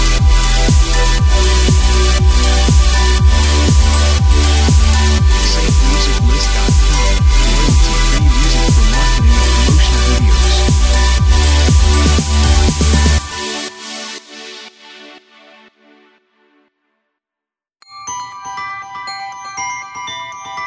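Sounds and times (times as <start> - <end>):
modern pop background intro: 0.0 - 15.4.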